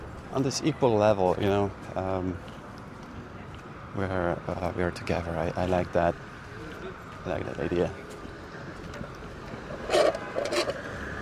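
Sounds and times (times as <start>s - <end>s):
speech: 0.4s - 2.6s, 4.0s - 6.3s, 7.2s - 8.0s
paper straw rubbing against a plastic cup lid: 9.8s - 10.8s.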